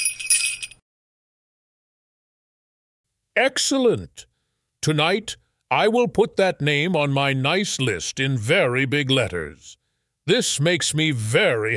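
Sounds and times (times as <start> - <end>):
sleigh bells jingling: 0.0 - 0.8
speech: 3.4 - 11.7.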